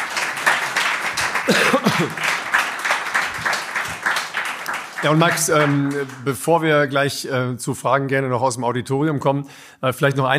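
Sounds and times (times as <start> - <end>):
audience applause: 0.0 - 6.4
speech: 1.5 - 2.4, 5.0 - 10.3.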